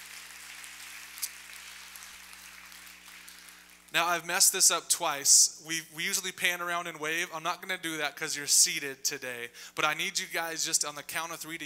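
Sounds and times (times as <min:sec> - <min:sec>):
audience applause: 0:00.0 - 0:03.8
speech: 0:03.9 - 0:11.6.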